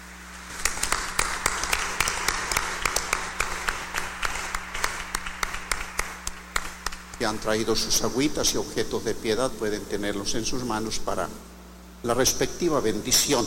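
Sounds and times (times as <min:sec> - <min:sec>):
audience applause: 0:00.5 - 0:07.2
speech: 0:07.2 - 0:13.4.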